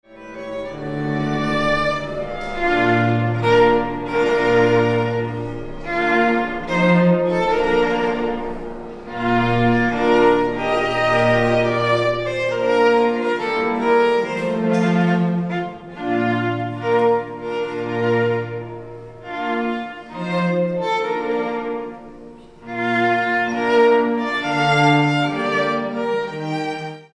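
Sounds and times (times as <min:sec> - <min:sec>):
quartet playing live: 0:00.1 - 0:27.1.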